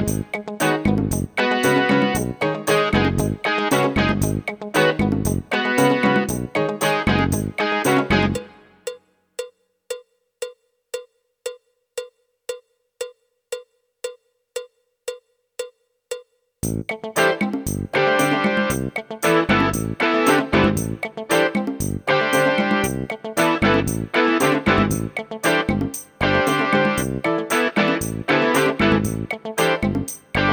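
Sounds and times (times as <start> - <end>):
medium rock music: 0.0 - 8.5, 16.6 - 30.5.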